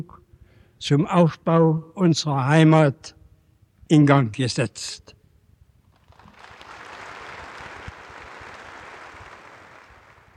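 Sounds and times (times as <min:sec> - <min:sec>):
speech: 0:00.0 - 0:00.2, 0:00.8 - 0:03.2, 0:03.9 - 0:05.2
applause in the Berliner Kongresshalle: 0:05.9 - 0:10.3.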